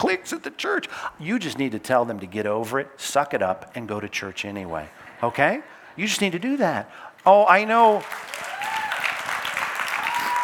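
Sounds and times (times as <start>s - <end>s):
speech: 0.0s - 8.5s
audience applause: 7.9s - 10.4s.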